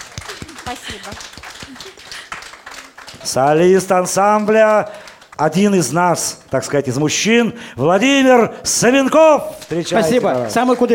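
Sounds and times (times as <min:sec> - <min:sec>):
audience applauding: 0:00.0 - 0:05.8, 0:09.4 - 0:10.9
speech: 0:00.7 - 0:02.2, 0:03.1 - 0:10.9.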